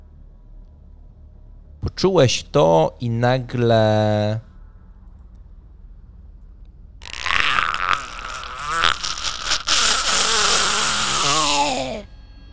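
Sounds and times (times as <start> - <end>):
speech: 1.9 - 4.5
strange distorted scream echoing between rocks: 7.0 - 12.0.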